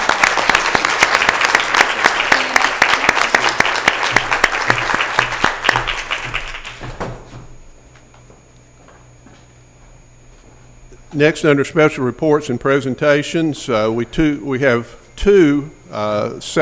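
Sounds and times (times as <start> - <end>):
audience applause at a school board meeting: 0.0 - 6.8
speech: 11.2 - 16.5.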